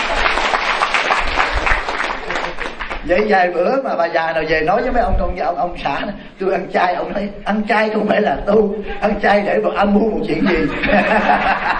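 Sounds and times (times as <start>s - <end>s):
audience applause at a talk about vegetarian eating and spiritual practice: 0.0s - 3.1s
speech: 3.1s - 11.7s
laughter: 8.8s - 11.7s.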